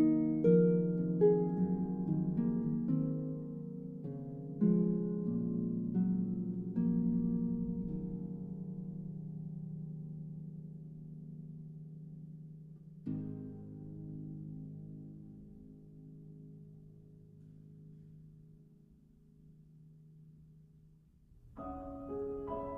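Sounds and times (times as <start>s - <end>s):
harp concerto lullaby: 0.0s - 18.2s.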